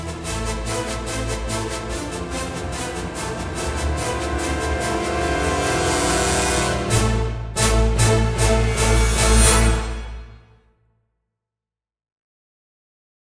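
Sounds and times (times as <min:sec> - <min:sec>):
brass stings: 0:00.2 - 0:10.5.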